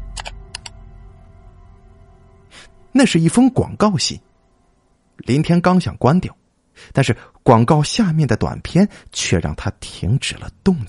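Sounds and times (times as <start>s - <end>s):
computer mouse click: 0.0s - 0.7s
speech: 2.9s - 4.3s, 5.2s - 10.8s.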